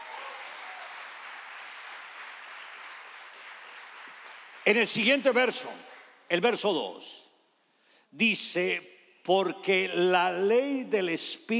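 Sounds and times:
crowd applause: 0:00.0 - 0:05.1
speech: 0:04.6 - 0:07.2, 0:08.1 - 0:11.5.

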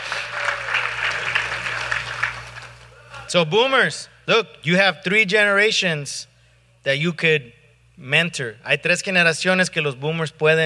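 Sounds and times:
crowd clapping: 0:00.0 - 0:03.3
speech: 0:03.3 - 0:10.6.

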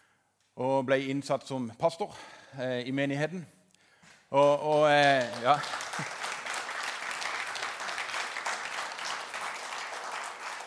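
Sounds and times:
speech: 0:00.6 - 0:03.6, 0:04.3 - 0:06.2
audience clapping: 0:04.4 - 0:10.6.

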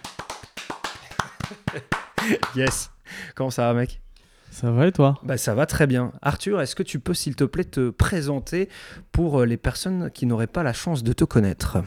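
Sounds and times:
hand clapping: 0:00.0 - 0:02.9
laughter: 0:01.0 - 0:02.6
speech: 0:01.5 - 0:11.8.

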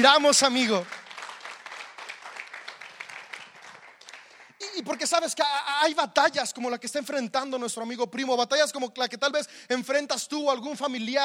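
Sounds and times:
speech: 0:00.0 - 0:01.0, 0:04.8 - 0:11.2
audience applause: 0:00.0 - 0:05.3.

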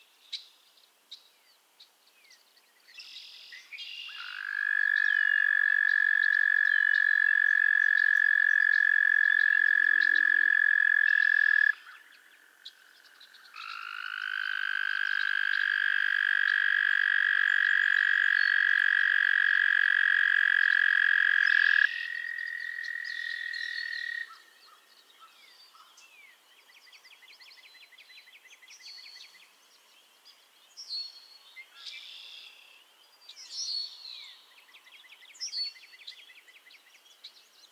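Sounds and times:
frog trill: 0:04.2 - 0:12.0, 0:13.6 - 0:24.3.

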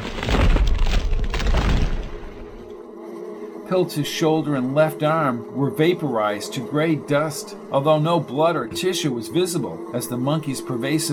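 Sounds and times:
small explosion: 0:00.0 - 0:02.6
speech: 0:03.7 - 0:11.1.

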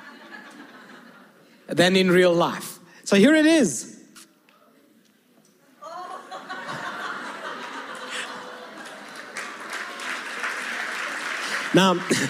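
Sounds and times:
audience laughing: 0:00.0 - 0:01.4, 0:05.8 - 0:12.2
speech: 0:01.7 - 0:04.0, 0:11.8 - 0:12.2
audience clapping: 0:07.3 - 0:12.2.

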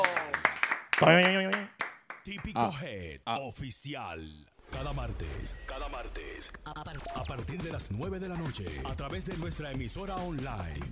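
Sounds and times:
sharp hand claps: 0:00.0 - 0:02.7
speech: 0:01.0 - 0:01.7, 0:02.3 - 0:10.9.

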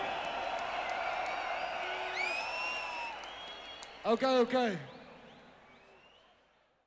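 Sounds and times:
crowd cheering and applauding: 0:00.0 - 0:04.6
shrill whistles: 0:01.6 - 0:04.0
speech: 0:04.0 - 0:04.9.

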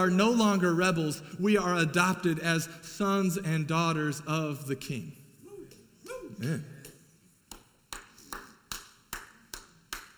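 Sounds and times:
speech: 0:00.0 - 0:05.2, 0:06.4 - 0:06.7
single awkward hand clap: 0:07.5 - 0:10.1.

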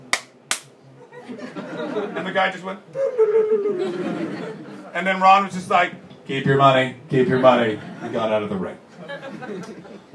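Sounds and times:
sharp hand claps: 0:00.1 - 0:00.8
laughter: 0:01.0 - 0:05.0, 0:07.1 - 0:10.1
speech: 0:01.3 - 0:10.1.

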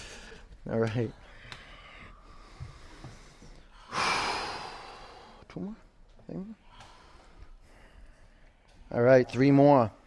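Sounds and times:
breathing after an arm exercise: 0:00.0 - 0:00.6, 0:01.2 - 0:05.5, 0:06.6 - 0:08.9
speech: 0:00.6 - 0:01.2, 0:05.5 - 0:06.6, 0:08.9 - 0:10.0.

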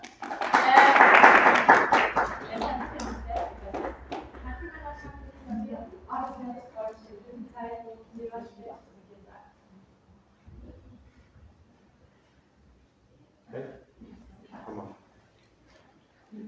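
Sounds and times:
audience applause: 0:00.0 - 0:04.5
person speaking: 0:02.3 - 0:07.6.

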